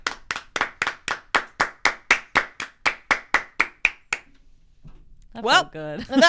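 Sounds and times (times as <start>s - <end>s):
hand clapping: 0.0s - 4.3s
speech: 5.4s - 6.2s.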